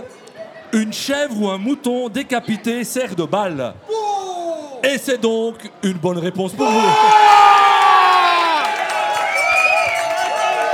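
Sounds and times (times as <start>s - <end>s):
speech: 0.7s - 4.0s, 4.8s - 7.5s
live crowd cheering and shouting: 6.6s - 10.7s.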